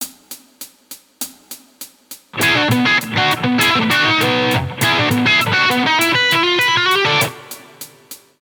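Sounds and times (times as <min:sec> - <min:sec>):
guitar licks: 0:02.4 - 0:08.1.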